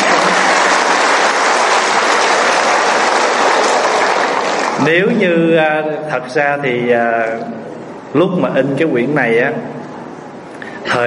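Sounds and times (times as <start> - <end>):
crowd applause: 0.0 - 5.0
speech: 4.8 - 9.8, 10.9 - 11.0.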